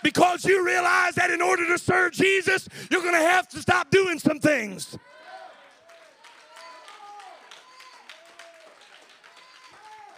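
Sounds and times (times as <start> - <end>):
speech: 0.0 - 5.2
light polite clapping from a small audience: 5.6 - 10.1.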